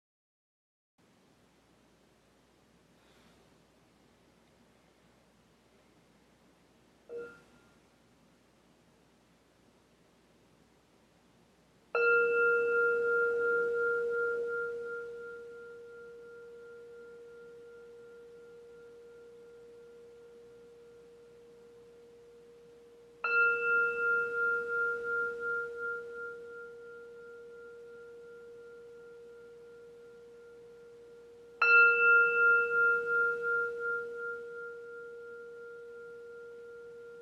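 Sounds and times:
meditation bell ringing: 0:07.1 - 0:07.9, 0:11.9 - 0:37.2.

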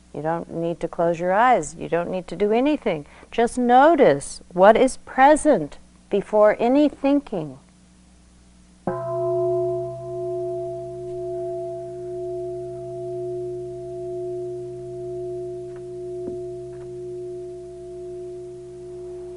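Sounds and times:
speech: 0:00.2 - 0:07.6
meditation bell ringing: 0:08.9 - 0:19.3.

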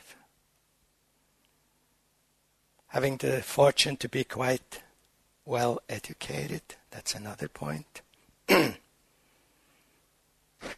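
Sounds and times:
speech: 0:02.9 - 0:04.9, 0:05.5 - 0:08.8
person coughing: 0:08.5 - 0:08.9.

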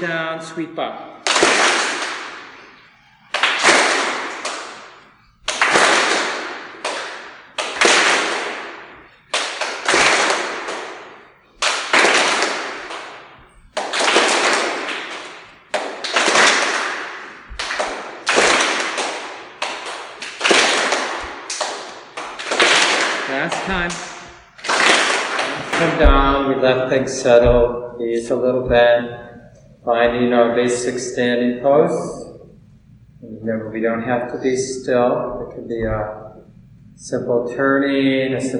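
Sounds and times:
speech: 0:00.0 - 0:01.2, 0:27.1 - 0:32.2, 0:33.2 - 0:36.2, 0:37.0 - 0:38.5
hands clapping above head during swings: 0:01.2 - 0:26.4.

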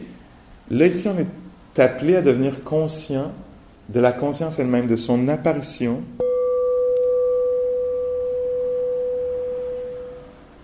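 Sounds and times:
speech: 0:00.7 - 0:06.2
meditation bell ringing: 0:06.2 - 0:10.6.

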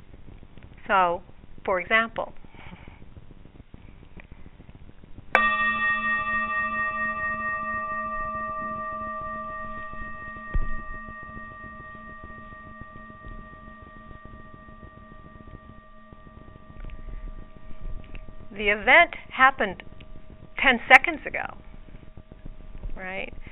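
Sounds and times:
speech: 0:00.9 - 0:02.4, 0:18.6 - 0:19.9, 0:20.6 - 0:21.6, 0:23.0 - 0:23.4
bell struck and reverberating: 0:05.4 - 0:22.0.

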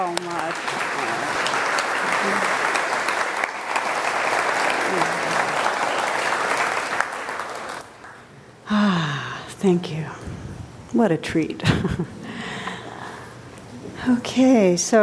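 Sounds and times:
audience applause: 0:00.0 - 0:08.3
speech: 0:09.6 - 0:10.1, 0:10.9 - 0:12.2, 0:14.1 - 0:15.0.

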